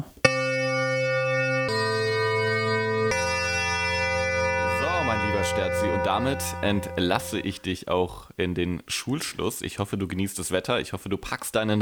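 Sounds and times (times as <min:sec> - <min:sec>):
electronic school gong chime: 0:00.3 - 0:07.6
speech: 0:05.5 - 0:11.7.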